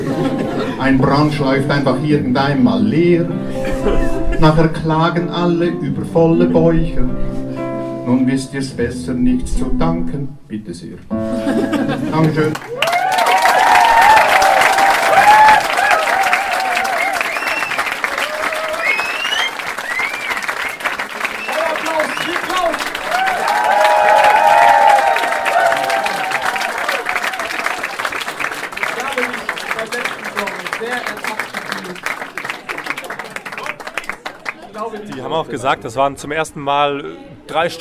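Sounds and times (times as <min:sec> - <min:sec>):
laughter: 0:00.0 - 0:01.2, 0:03.5 - 0:04.6, 0:11.3 - 0:12.8
speech: 0:00.8 - 0:07.5, 0:08.1 - 0:12.8, 0:35.3 - 0:37.8
audience applause and cheering: 0:12.2 - 0:35.3.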